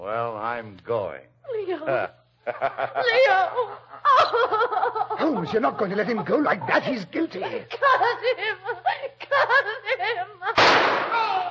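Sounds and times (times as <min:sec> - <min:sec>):
speech: 0:00.1 - 0:09.0
laughter: 0:01.9 - 0:10.6
gunshot in a Sherlock Holmes radio drama: 0:10.6 - 0:11.3.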